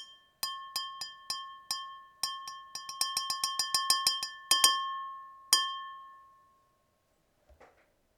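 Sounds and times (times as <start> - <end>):
glass bing: 0.0 - 6.3.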